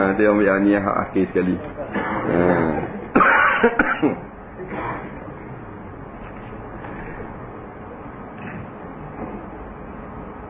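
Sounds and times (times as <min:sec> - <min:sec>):
speech: 0:00.1 - 0:03.0, 0:03.6 - 0:04.3
coughing: 0:01.9 - 0:05.3.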